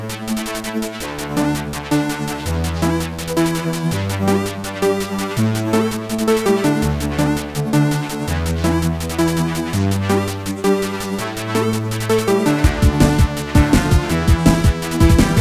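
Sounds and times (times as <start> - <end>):
instrumental music: 0.2 - 15.3.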